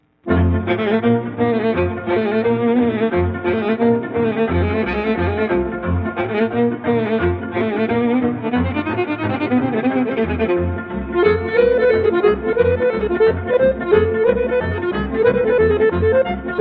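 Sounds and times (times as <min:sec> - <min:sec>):
Romanian sirba folk dance music from Craiova: 0:00.3 - 0:16.6.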